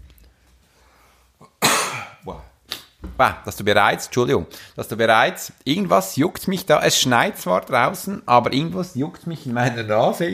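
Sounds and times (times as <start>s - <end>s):
person sneezing: 1.4s - 2.9s
speech: 2.2s - 2.5s, 3.2s - 10.3s.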